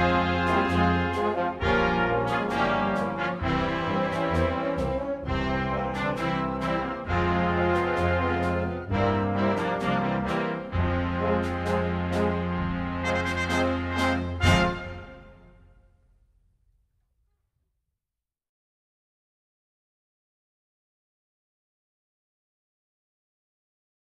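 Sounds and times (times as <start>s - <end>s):
instrumental national anthem: 0.0s - 15.8s.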